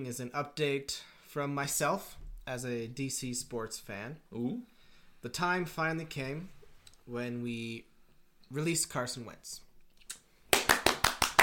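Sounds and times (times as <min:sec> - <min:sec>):
speech: 0:00.0 - 0:07.9, 0:08.5 - 0:09.6
clapping: 0:10.5 - 0:11.4.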